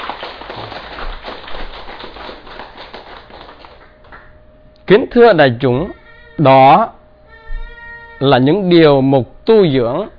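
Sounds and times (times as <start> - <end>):
crowd applauding: 0.0 - 4.4
speech: 4.9 - 7.0, 8.2 - 10.1.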